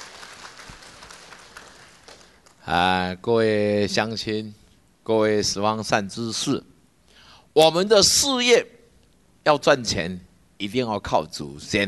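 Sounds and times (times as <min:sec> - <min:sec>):
audience applause: 0:00.0 - 0:02.6
speech: 0:02.6 - 0:06.7, 0:07.6 - 0:08.8, 0:09.4 - 0:11.8.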